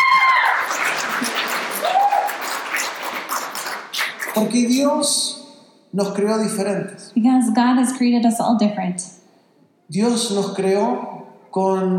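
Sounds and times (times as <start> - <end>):
applause: 0.0 - 4.8
speech: 4.4 - 9.2, 9.9 - 11.9.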